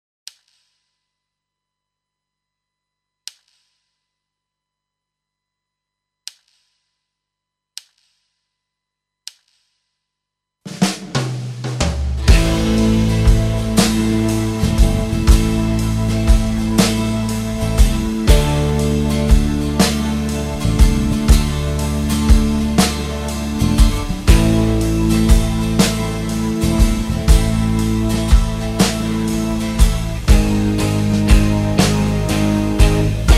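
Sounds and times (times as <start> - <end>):
guitar backing track: 12.2 - 33.3.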